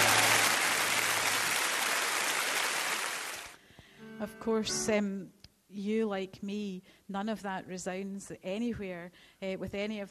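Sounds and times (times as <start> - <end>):
crowd applause: 0.0 - 3.6
speech: 4.2 - 10.0.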